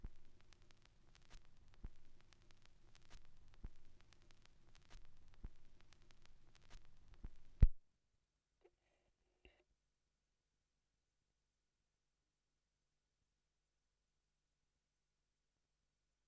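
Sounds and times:
vinyl record noise: 0:00.0 - 0:07.8.

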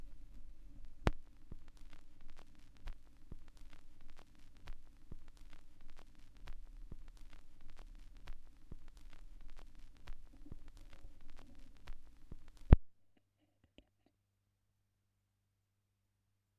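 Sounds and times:
vinyl record noise: 0:00.0 - 0:12.8.

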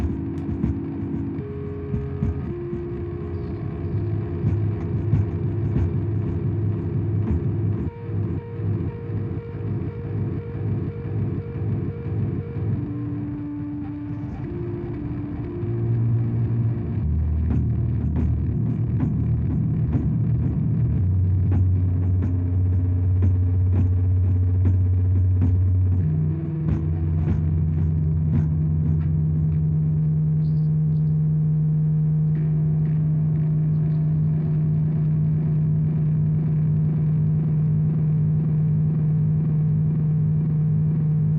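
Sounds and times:
tape recorder playback at 4.7 cm through loudspeaker, soundcheck: 0:00.0 - 0:41.3.

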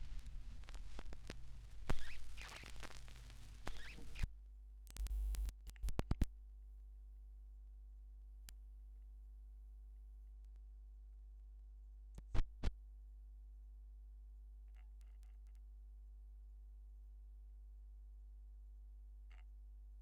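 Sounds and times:
vinyl record noise: 0:00.0 - 0:04.3, 0:04.9 - 0:06.3.

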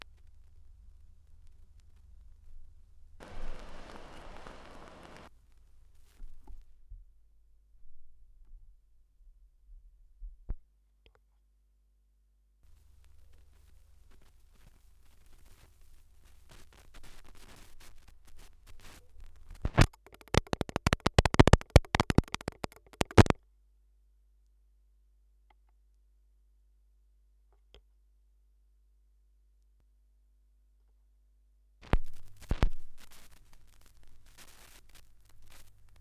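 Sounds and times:
vinyl record noise: 0:00.0 - 0:06.8, 0:12.7 - 0:23.4, 0:31.8 - 0:36.0.

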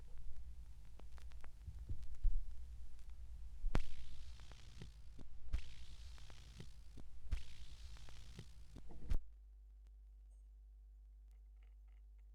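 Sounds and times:
vinyl record noise: 0:00.1 - 0:08.9.

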